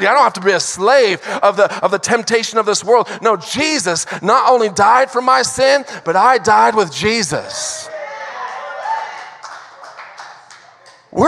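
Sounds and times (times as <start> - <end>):
speech: 0.0 - 7.9
audience clapping: 9.1 - 11.2.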